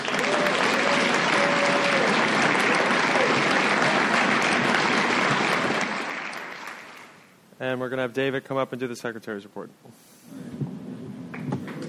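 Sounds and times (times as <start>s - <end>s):
audience applause: 0.0s - 7.3s, 11.3s - 11.8s
speech: 7.7s - 10.5s.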